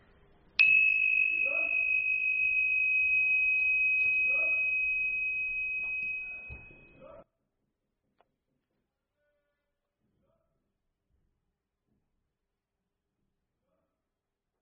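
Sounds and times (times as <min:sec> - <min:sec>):
meditation bell: 0:00.6 - 0:07.2.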